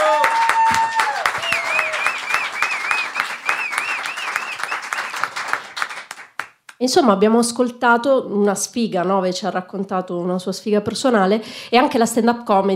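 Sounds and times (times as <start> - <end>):
audience applause: 0.0 - 6.6
speech: 6.8 - 12.7.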